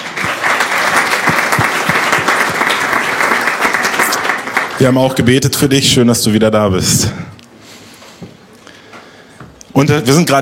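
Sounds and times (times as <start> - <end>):
audience applause: 0.0 - 5.4
speech: 4.8 - 7.3, 9.8 - 10.4.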